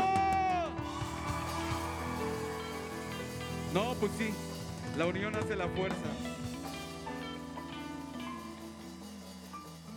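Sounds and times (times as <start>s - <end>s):
audience shouting for joy: 0.0s - 4.6s
speech: 3.7s - 6.5s.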